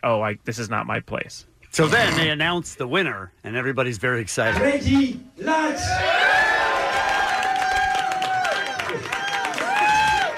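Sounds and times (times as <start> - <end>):
speech: 0.0 - 6.4
audience cheering and applauding: 5.8 - 10.3.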